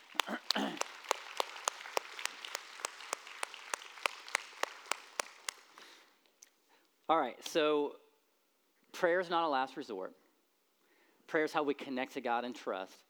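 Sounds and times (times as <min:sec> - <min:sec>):
audience applause: 0:00.0 - 0:05.8
speech: 0:07.1 - 0:08.0, 0:09.0 - 0:10.2, 0:11.3 - 0:13.0.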